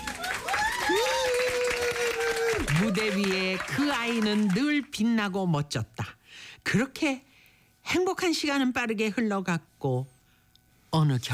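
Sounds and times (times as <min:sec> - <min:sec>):
audience whistling: 0:00.0 - 0:03.8
audience applause: 0:00.0 - 0:05.0
speech: 0:02.8 - 0:07.3, 0:07.9 - 0:10.1, 0:10.9 - 0:11.3.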